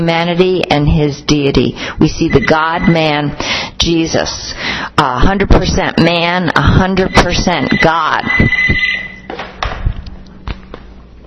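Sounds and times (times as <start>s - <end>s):
speech: 0.0s - 9.0s
phone ringing: 7.0s - 9.3s.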